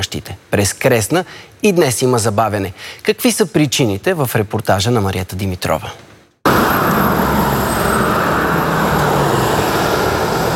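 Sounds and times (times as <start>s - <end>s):
speech: 0.0s - 6.1s
heavy road traffic through a mountain gorge: 6.5s - 10.5s.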